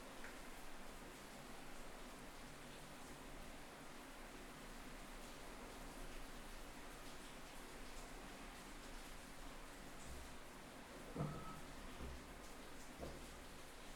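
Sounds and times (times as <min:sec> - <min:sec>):
rain through an open ground floor kitchen window: 0:00.0 - 0:13.9.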